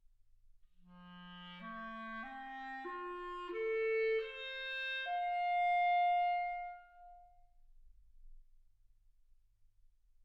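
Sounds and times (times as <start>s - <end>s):
clarinet: 0.9s - 7.5s.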